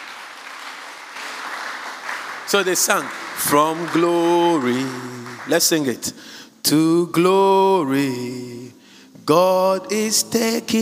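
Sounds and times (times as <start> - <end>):
audience applause: 0.0 - 5.9
speech: 2.5 - 10.8.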